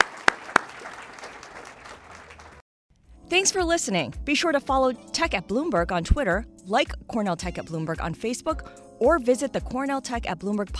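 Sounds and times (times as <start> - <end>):
audience applause: 0.0 - 2.6
speech: 3.3 - 10.7.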